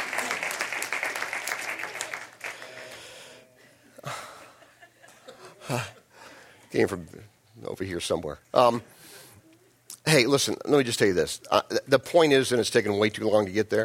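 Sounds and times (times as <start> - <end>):
audience applause: 0.0 - 3.3
speech: 5.7 - 6.0, 6.7 - 9.0, 10.1 - 13.8.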